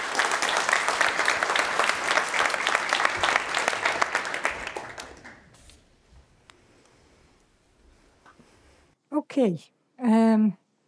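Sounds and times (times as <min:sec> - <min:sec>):
audience applause: 0:00.0 - 0:05.5
speech: 0:09.4 - 0:10.6.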